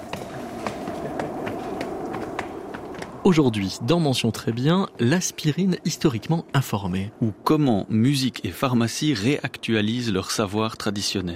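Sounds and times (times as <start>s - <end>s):
footsteps climbing a red staircase leading up to a studio: 0.0s - 3.2s
noise: 0.0s - 11.3s
speech: 3.2s - 11.3s.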